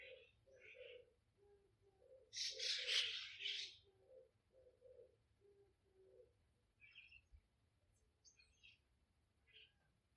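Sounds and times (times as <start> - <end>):
bird cooing in a garden: 0.0 - 6.4.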